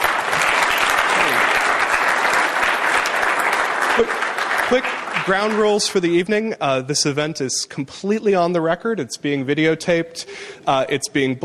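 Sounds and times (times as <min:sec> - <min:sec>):
audience applause: 0:00.0 - 0:06.1
speech: 0:04.0 - 0:11.4.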